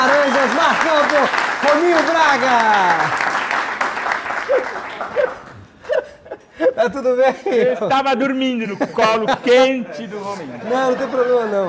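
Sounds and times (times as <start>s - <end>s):
audience applause: 0.0s - 5.7s
speech: 1.1s - 3.3s, 6.6s - 11.6s
laughter: 4.4s - 11.6s.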